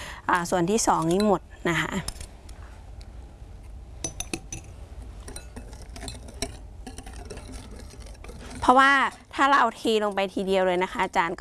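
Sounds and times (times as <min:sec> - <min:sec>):
speech: 0:00.3 - 0:02.2, 0:08.7 - 0:11.3
spoon clinking and tapping against the bowl: 0:04.0 - 0:04.7, 0:05.3 - 0:09.3
spoon scraping while stirring a mixture in a bowl: 0:04.1 - 0:11.3.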